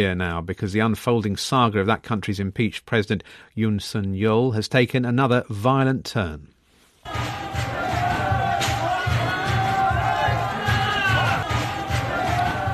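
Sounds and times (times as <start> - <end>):
speech: 0.0 - 7.7
hundreds of supporters shouting and roaring storming the Seoul Western District Court: 7.1 - 12.7.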